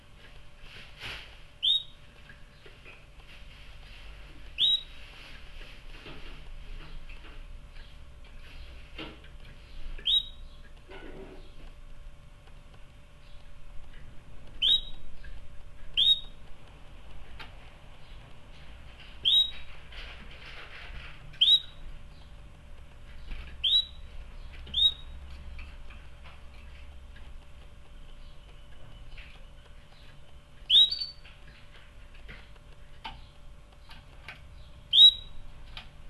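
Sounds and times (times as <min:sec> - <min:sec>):
low background hum: 0:00.0 - 0:36.0
canary chirping: 0:01.6 - 0:03.0, 0:04.6 - 0:05.1, 0:09.6 - 0:10.7, 0:14.5 - 0:16.4, 0:19.2 - 0:19.8, 0:21.4 - 0:22.4, 0:23.1 - 0:25.8, 0:27.9 - 0:31.7, 0:33.1 - 0:35.4.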